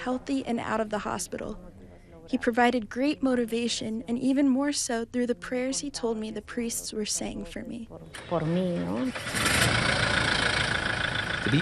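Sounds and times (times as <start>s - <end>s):
speech: 0.0s - 9.8s
Bishop Prevost's 4x4 truck engine: 8.1s - 11.6s.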